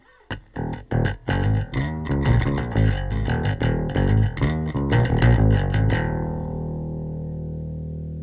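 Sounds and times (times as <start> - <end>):
bass: 0.3 - 8.2.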